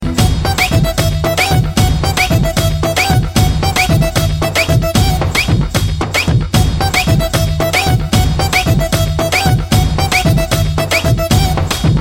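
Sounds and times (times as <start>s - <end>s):
music: 0.0s - 11.9s.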